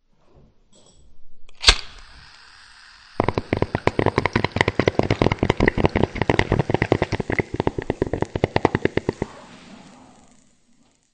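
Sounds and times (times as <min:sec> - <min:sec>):
bong: 0:03.2 - 0:09.5.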